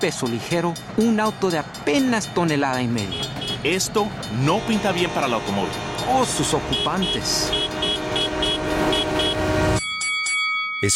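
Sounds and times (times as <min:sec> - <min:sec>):
speech: 0:00.0 - 0:07.8, 0:10.8 - 0:10.9
train horn at a railway crossing: 0:04.5 - 0:09.8.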